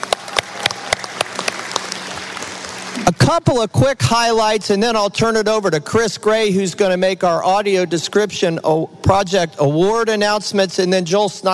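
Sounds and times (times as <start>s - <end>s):
audience applause: 0.0s - 3.3s
speech: 3.1s - 11.5s.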